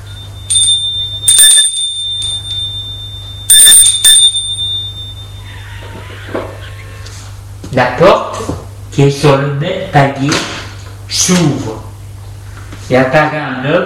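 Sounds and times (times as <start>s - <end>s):
apartment doorbell ringing: 0.0s - 6.6s
steady low hum: 0.0s - 7.6s
speech: 7.7s - 10.5s, 11.1s - 11.8s, 12.9s - 13.8s.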